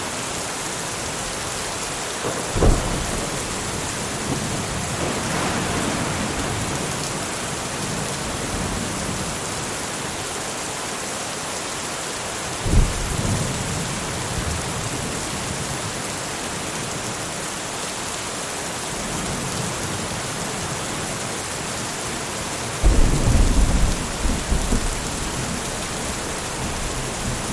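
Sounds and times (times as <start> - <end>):
rain in an autumn field during a thunderstorm: 0.0 - 27.5
thunder rumbling over an autumn field: 2.2 - 7.6, 22.8 - 27.5.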